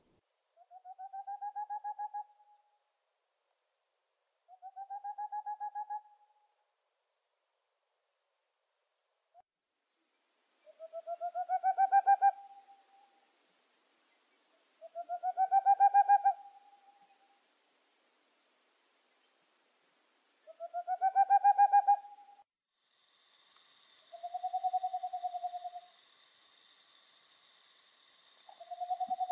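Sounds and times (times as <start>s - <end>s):
boreal owl hooting: 0.6s - 2.7s, 4.5s - 6.5s, 10.6s - 13.3s, 14.5s - 17.4s, 20.4s - 22.4s, 23.0s - 29.3s.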